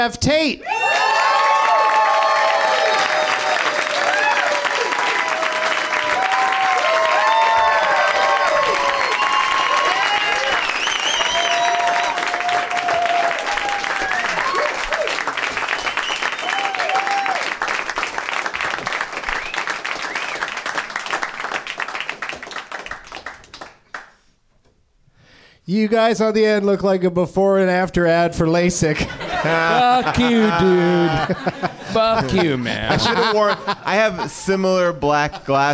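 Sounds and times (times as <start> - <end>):
speech: 0.0 - 1.1, 25.7 - 35.7
audience cheering: 0.6 - 22.4, 29.2 - 33.4
audience clapping welcoming guests onto a comedy show: 0.8 - 24.2, 29.5 - 31.6
whistles: 8.8 - 12.2, 15.7 - 17.0, 19.3 - 20.6
laughter: 29.0 - 35.7.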